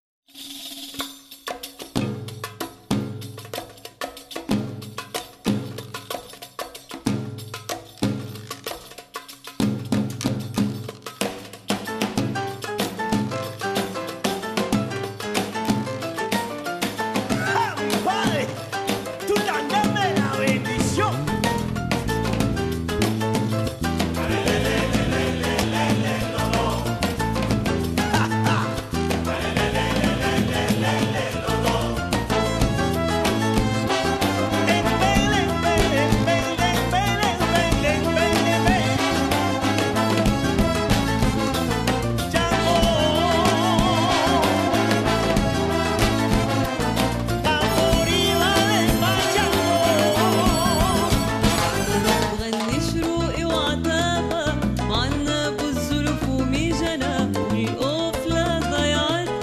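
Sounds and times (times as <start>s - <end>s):
son cubano baladi music: 0.5s - 59.4s.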